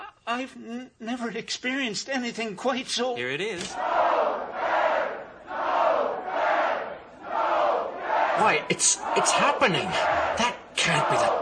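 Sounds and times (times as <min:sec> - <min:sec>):
speech: 0:00.3 - 0:04.6, 0:08.4 - 0:11.3
crowd noise from a city square: 0:03.8 - 0:11.3.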